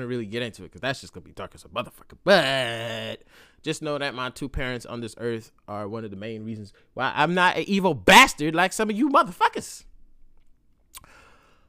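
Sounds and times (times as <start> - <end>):
speech: 0.0 - 9.9
sipping a drink: 10.9 - 11.2.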